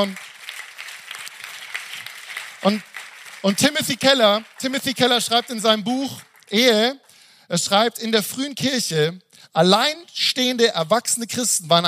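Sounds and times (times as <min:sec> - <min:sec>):
speech: 0:00.0 - 0:00.3, 0:02.6 - 0:11.8
applause: 0:00.0 - 0:07.0.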